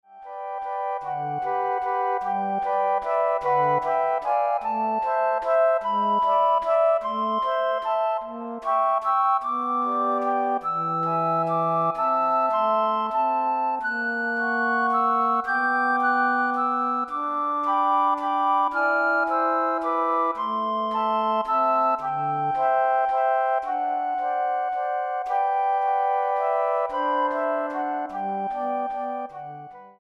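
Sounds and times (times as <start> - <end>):
flute ensemble playing: 0.2 - 29.9.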